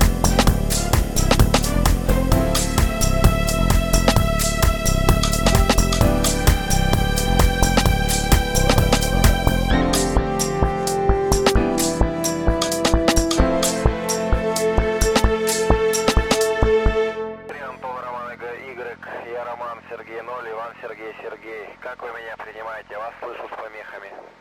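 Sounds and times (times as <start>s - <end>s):
upbeat Japanese gaming music: 0.0s - 18.9s.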